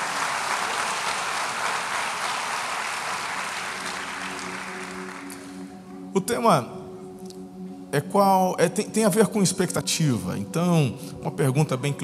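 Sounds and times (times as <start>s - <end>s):
crowd applauding: 0.0s - 5.8s
speech: 6.2s - 6.8s, 7.9s - 12.0s.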